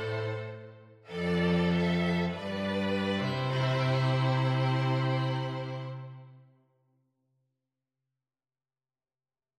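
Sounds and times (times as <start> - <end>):
cello: 0.0 - 6.4
violin: 0.0 - 6.5.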